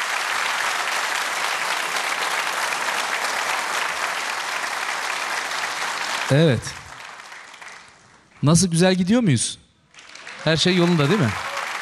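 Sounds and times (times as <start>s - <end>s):
audience applause after a halay folk dance performance: 0.0s - 8.4s, 9.9s - 11.8s
speech: 6.3s - 6.8s, 8.4s - 9.6s, 10.4s - 11.5s.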